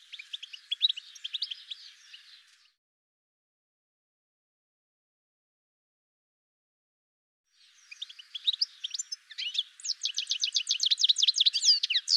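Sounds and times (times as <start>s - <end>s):
bird chirps and trills: 0.0s - 2.8s, 7.6s - 12.1s.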